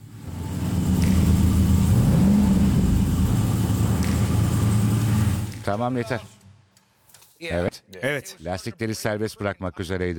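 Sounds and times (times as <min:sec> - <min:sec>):
car engine revving, accelerating by itself: 0:00.0 - 0:05.7
speech: 0:05.7 - 0:06.4, 0:07.4 - 0:10.1.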